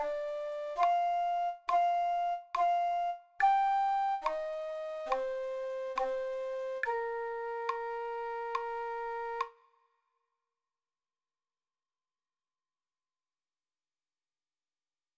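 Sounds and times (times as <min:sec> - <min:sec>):
Russian folk music: 0:00.0 - 0:09.4.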